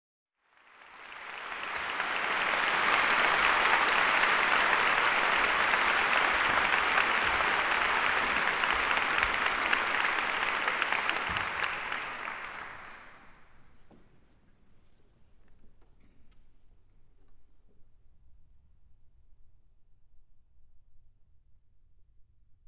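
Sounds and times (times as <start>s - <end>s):
applause: 0.4s - 13.8s.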